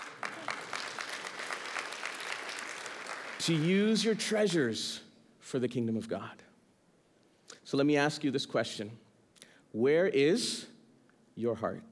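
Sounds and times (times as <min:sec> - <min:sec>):
audience applause: 0:00.0 - 0:03.7
speech: 0:03.4 - 0:06.5, 0:07.7 - 0:09.0, 0:09.7 - 0:10.7, 0:11.4 - 0:11.9.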